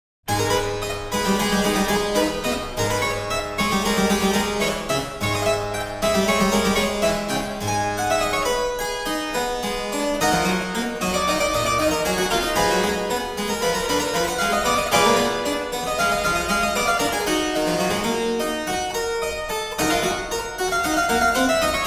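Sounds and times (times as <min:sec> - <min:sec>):
keyboard: 0:00.3 - 0:21.8.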